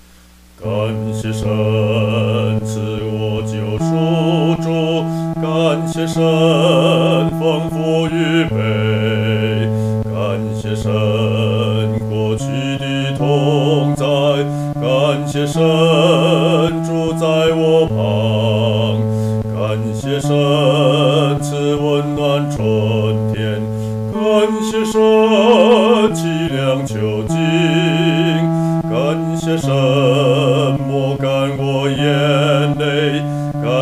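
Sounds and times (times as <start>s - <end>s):
solo singing: 0.6s - 33.7s.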